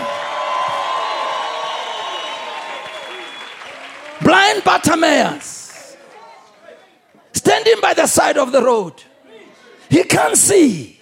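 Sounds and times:
audience applauding: 0:00.0 - 0:06.4
speech: 0:04.3 - 0:05.6, 0:07.6 - 0:09.1, 0:09.9 - 0:11.0.

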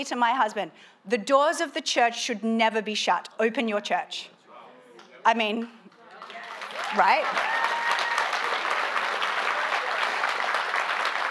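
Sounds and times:
speech: 0:00.0 - 0:04.4, 0:05.2 - 0:07.6
audience applause: 0:06.1 - 0:11.2.

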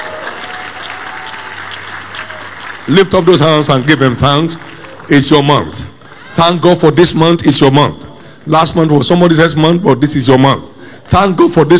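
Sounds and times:
church congregation clapping in worship: 0:00.0 - 0:06.9, 0:10.8 - 0:11.7
speech: 0:02.9 - 0:11.7.

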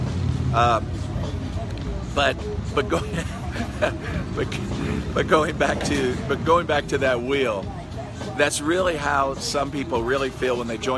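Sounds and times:
Harley-Davidson motorcycles passing in the Great Smoky Mountains: 0:00.0 - 0:10.9
speech: 0:00.5 - 0:01.0, 0:02.2 - 0:10.9
laughter: 0:02.8 - 0:05.4.

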